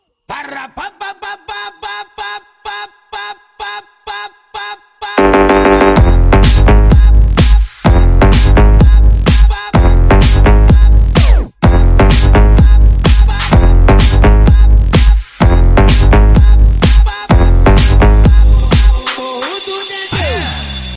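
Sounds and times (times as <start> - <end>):
mega funk music: 5.2 - 20.9.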